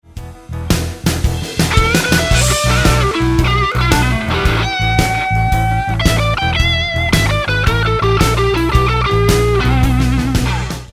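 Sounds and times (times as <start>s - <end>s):
roadhouse guitar licks: 1.6s - 10.9s.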